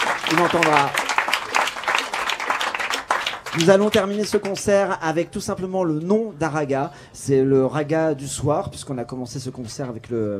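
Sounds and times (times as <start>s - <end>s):
audience applause: 0.0s - 4.8s
speech: 0.3s - 1.0s, 3.5s - 10.3s.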